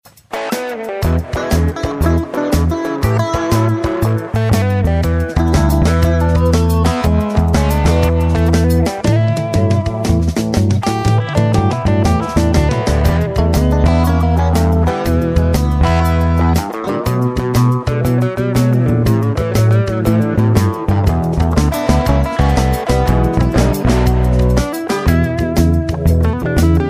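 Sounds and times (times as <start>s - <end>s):
instrumental blues music: 0.1s - 26.8s.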